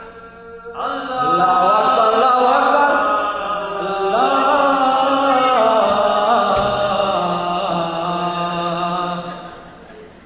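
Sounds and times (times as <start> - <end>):
Islamic call to prayer: 0.0 - 9.7.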